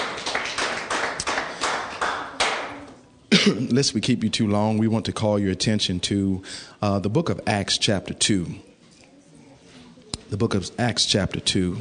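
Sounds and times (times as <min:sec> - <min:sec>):
crowd of people clapping hands in praise: 0:00.0 - 0:02.9
speech: 0:03.4 - 0:08.7, 0:10.3 - 0:11.7.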